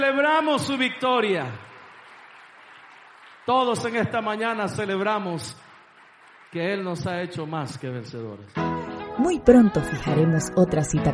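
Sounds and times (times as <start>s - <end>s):
speech: 0.0s - 1.7s, 3.5s - 5.7s, 6.5s - 11.1s
audience applause: 0.0s - 8.4s.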